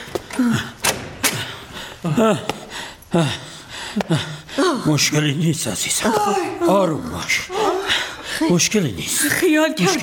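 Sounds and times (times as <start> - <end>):
door opening: 0.0 - 1.6
speech: 0.4 - 0.7, 2.0 - 10.0.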